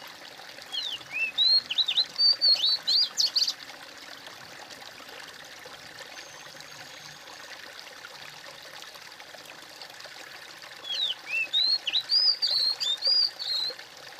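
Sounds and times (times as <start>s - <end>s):
bird singing high twisting whistled chirps: 0.7s - 3.6s, 10.8s - 13.8s.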